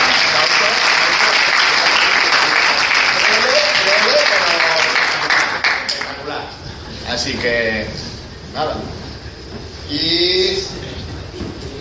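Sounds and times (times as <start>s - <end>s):
crowd clapping: 0.0s - 6.4s
speech: 7.2s - 9.0s, 9.9s - 10.8s.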